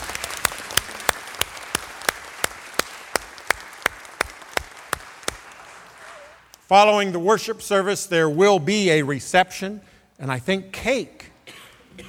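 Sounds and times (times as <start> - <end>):
audience applause: 0.0 - 6.5
speech: 6.7 - 11.2.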